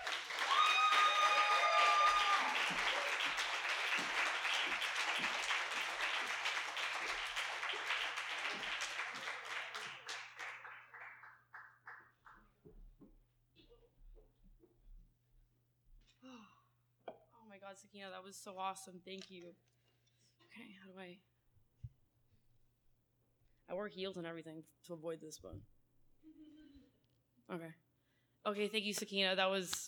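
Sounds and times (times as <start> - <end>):
audience clapping welcoming a poet to the stage at a reading: 0.0 - 12.6
speech: 17.8 - 19.7, 20.6 - 21.3, 23.8 - 25.8, 27.5 - 27.8, 28.5 - 29.8.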